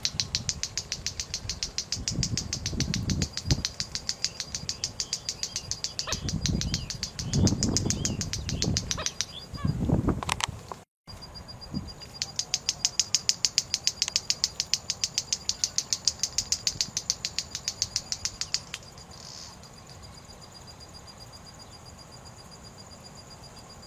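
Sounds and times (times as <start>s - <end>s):
white-bellied seedeater song: 0.0s - 10.7s, 12.0s - 19.1s.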